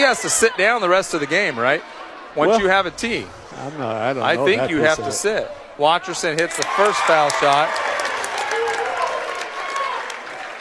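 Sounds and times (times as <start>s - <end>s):
speech: 0.0s - 7.9s
rowdy YC fans clapping and shouting at a boys' basketball game against Amity: 6.2s - 10.5s.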